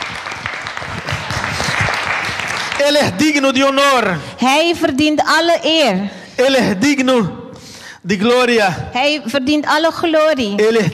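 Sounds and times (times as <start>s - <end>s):
church congregation clapping in praise during a sermon: 0.0s - 3.7s
speech: 2.8s - 7.4s, 8.0s - 10.9s.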